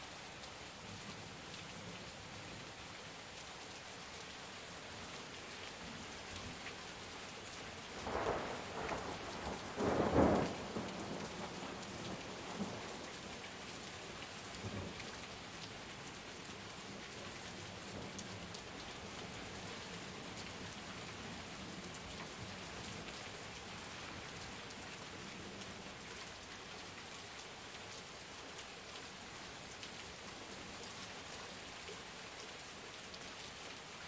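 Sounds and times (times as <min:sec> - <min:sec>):
heavy rain storm heard from under a balcony in daytime: 0:00.0 - 0:34.0
heavy thunder: 0:08.1 - 0:12.7.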